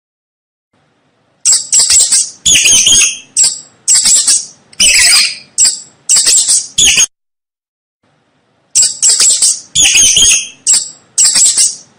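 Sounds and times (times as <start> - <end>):
mouse squeaking: 1.4 - 7.1, 8.7 - 11.9.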